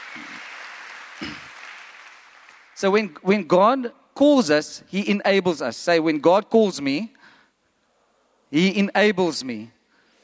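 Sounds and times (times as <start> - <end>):
faint applause during a sermon: 0.0 - 2.8
speech: 2.8 - 7.2, 8.5 - 9.8.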